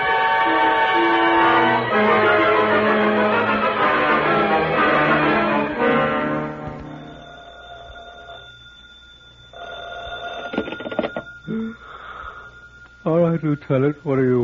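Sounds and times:
telephone ringing: 0.0 - 11.9
clattering noise: 10.4 - 11.3
speech: 13.4 - 14.4.

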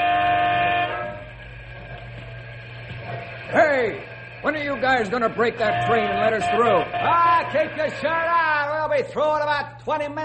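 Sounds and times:
truck air horn blaring: 0.0 - 1.5, 3.4 - 8.9
speech: 3.5 - 8.4, 9.0 - 10.2.

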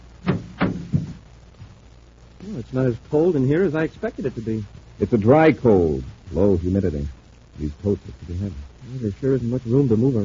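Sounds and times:
heavy chamber door clunking shut: 0.2 - 1.2
faint knock of the door settling: 0.2 - 1.8
speech: 2.5 - 10.2.

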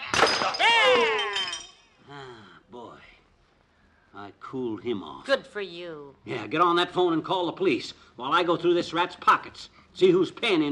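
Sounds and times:
glass breaking: 0.0 - 1.9
speech: 4.2 - 10.7.

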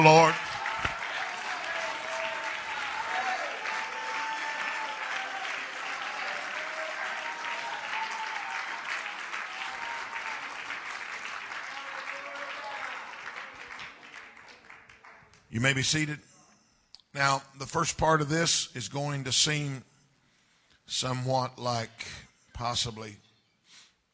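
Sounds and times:
speech: 0.0 - 0.5, 15.6 - 16.3, 17.2 - 19.9, 20.9 - 23.2
audience shouting: 0.0 - 10.6
audience clapping hands: 0.0 - 15.8.

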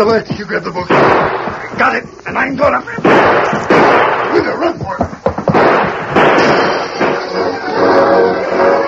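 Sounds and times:
speech: 0.0 - 5.1
gunshots on a ranch in a dramatized scene: 0.9 - 2.0, 3.0 - 8.7.

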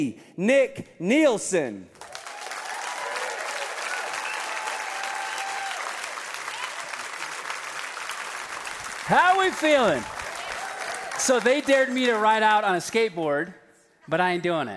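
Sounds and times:
speech: 0.0 - 2.0, 9.1 - 10.2, 11.2 - 14.7
large church audience applauding in a big room: 2.0 - 12.7
scattered whoops: 2.1 - 7.0, 10.0 - 11.2.

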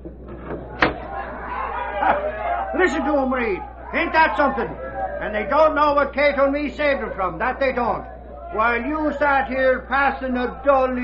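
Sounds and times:
low steady hum: 0.0 - 11.0
window being opened thud: 0.4 - 1.1
laughter: 0.7 - 7.6
speech: 2.8 - 11.0.

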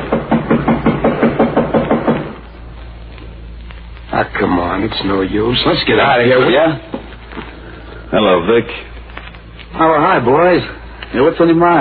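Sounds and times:
knocking on a door: 0.0 - 2.4
speech: 4.2 - 7.0, 8.1 - 8.9, 9.8 - 11.7.

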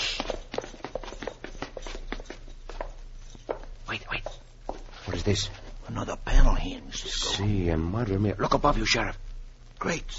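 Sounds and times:
footsteps climbing stairs in a secret passageway: 0.0 - 5.8
speech: 5.2 - 9.2, 9.8 - 10.1.

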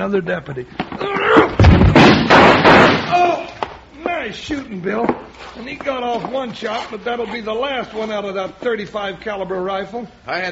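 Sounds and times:
speech: 0.0 - 1.6, 4.2 - 10.5
door being hit to break lock: 1.4 - 3.3.

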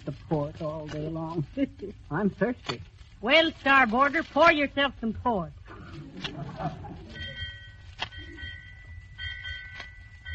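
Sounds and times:
speech: 0.0 - 7.0
laughter: 1.4 - 2.1, 5.7 - 7.5
ship's bell ringing: 7.1 - 10.3.

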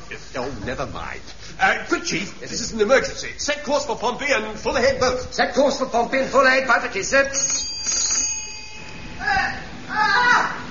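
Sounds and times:
speech: 0.4 - 8.0
bell ringing: 7.2 - 9.4.

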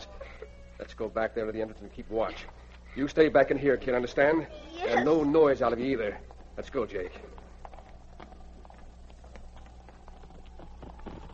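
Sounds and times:
low hum: 0.0 - 11.3
speech: 1.0 - 7.3
two Mounties' horses ridden up a trail: 5.8 - 11.3.

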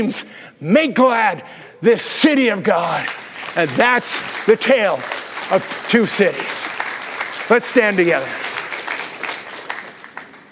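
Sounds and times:
speech: 0.0 - 6.8, 7.5 - 8.5
audience applauding: 2.9 - 10.5.

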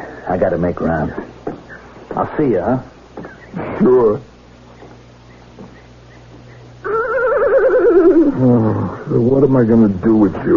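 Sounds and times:
speech: 0.3 - 1.4, 2.2 - 4.3, 8.4 - 10.5
horse neighing: 6.8 - 9.1.

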